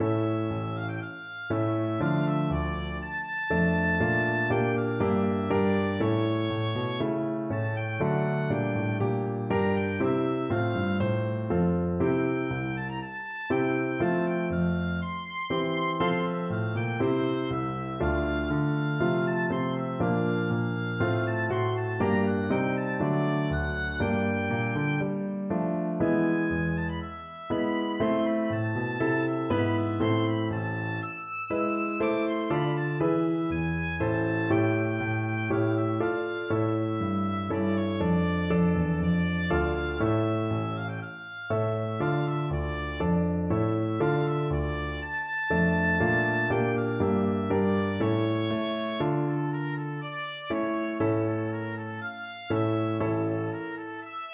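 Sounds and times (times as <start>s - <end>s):
oboe sonata: 0.0s - 54.3s.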